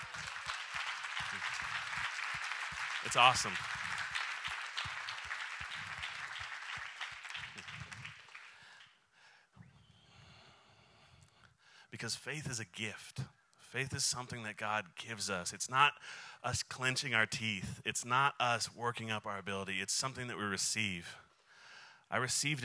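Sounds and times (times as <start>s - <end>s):
audience clapping: 0.0s - 9.0s
speech: 3.0s - 3.8s, 12.0s - 21.2s, 22.1s - 22.6s.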